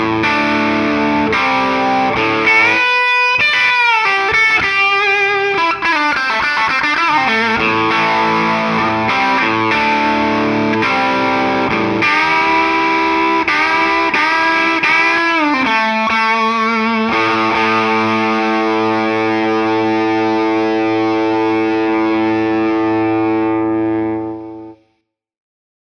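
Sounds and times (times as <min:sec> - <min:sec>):
Les Paul electric guitar lead: 0:00.0 - 0:24.9.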